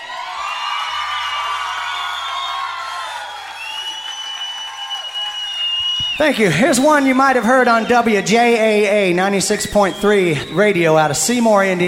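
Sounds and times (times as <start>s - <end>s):
audience applause: 0.0s - 8.6s
crowd whoops and high shouts: 0.0s - 9.0s
speech: 6.2s - 11.8s.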